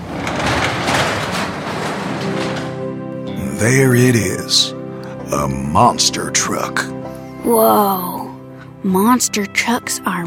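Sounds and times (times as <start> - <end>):
garage door opening: 0.0 - 4.6
speech: 3.6 - 8.2, 8.8 - 10.2.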